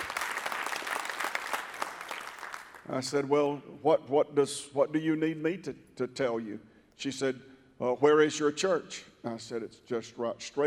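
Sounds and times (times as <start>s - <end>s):
audience clapping: 0.0s - 2.9s
speech: 2.9s - 10.6s.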